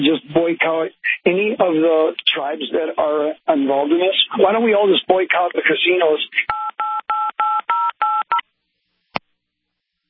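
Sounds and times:
speech: 0.0 - 7.6
telephone keypad tones: 6.5 - 8.4.

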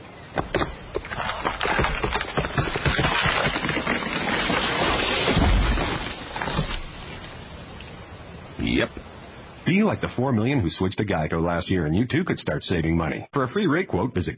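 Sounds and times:
tree falling in a forest, wood cracking and splintering: 0.4 - 7.4
speech: 9.8 - 14.3.

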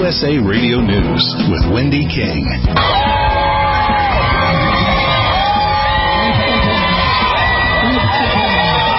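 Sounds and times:
speech: 0.1 - 3.2
large outdoor crowd cheering outside a hospital: 2.7 - 8.9.

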